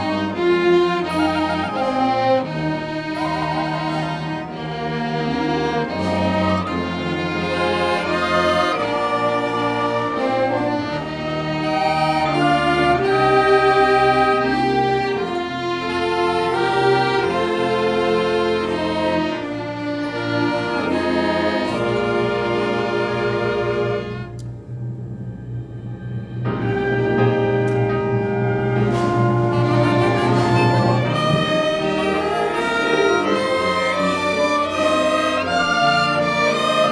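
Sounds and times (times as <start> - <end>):
flute solo at an orchestra concert: 0.0 - 36.9
orchestra playing in concert: 0.0 - 36.9.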